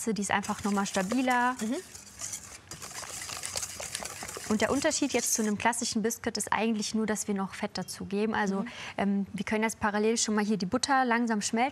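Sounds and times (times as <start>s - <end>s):
speech: 0.0s - 2.4s, 4.5s - 11.7s
whisking egg and sugar mixture in a kettle: 0.4s - 5.6s.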